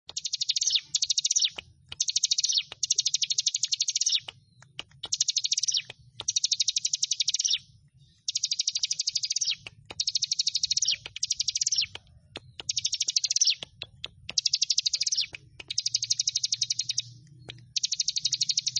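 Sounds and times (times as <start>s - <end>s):
prinia chattering trills: 0.1s - 18.7s.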